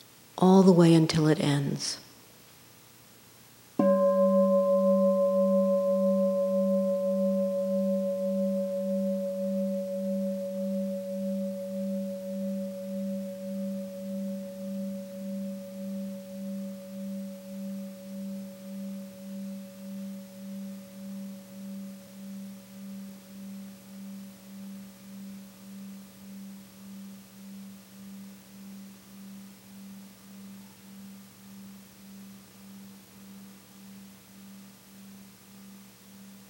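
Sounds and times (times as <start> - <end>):
speech: 0.4 - 2.1
gong ringing: 3.8 - 19.8.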